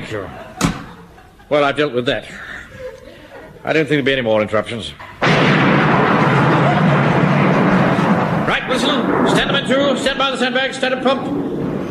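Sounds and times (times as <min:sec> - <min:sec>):
laughter: 0:00.0 - 0:03.9, 0:06.3 - 0:07.4
speech: 0:00.1 - 0:00.5, 0:01.5 - 0:02.5, 0:03.6 - 0:06.0, 0:08.7 - 0:11.5
thunder clap: 0:05.2 - 0:11.8.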